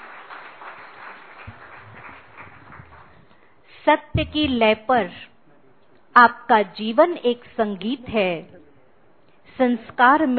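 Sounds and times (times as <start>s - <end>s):
audience clapping to welcome a group of singers: 0.0s - 3.5s
speech: 3.8s - 5.3s, 6.2s - 8.6s, 9.5s - 10.3s
low thumps: 4.1s - 4.8s.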